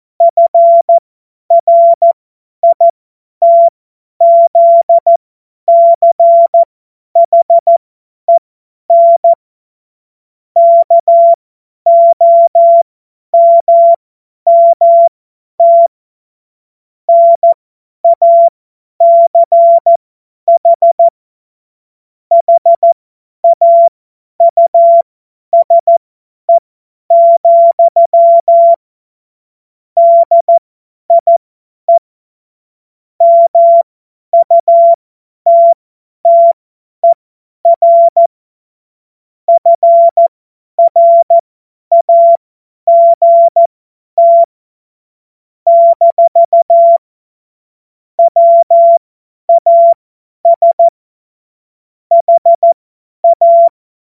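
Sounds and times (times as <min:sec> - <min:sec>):
CW Morse code beeps: 0:00.2 - 0:09.4, 0:10.6 - 0:12.8, 0:13.4 - 0:15.9, 0:17.1 - 0:21.1, 0:22.3 - 0:28.8, 0:30.0 - 0:32.0, 0:33.2 - 0:38.3, 0:39.5 - 0:44.5, 0:45.7 - 0:47.0, 0:48.2 - 0:51.0, 0:52.1 - 0:53.8.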